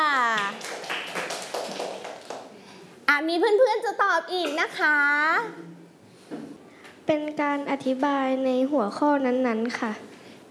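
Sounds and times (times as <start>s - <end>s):
group of children clapping hands: 0.1s - 2.5s
speech: 3.2s - 5.8s, 7.1s - 10.1s.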